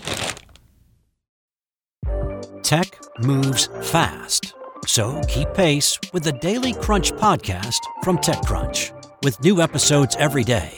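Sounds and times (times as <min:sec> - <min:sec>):
Ziploc bag being opened: 0:00.0 - 0:00.7
speech: 0:02.6 - 0:10.7.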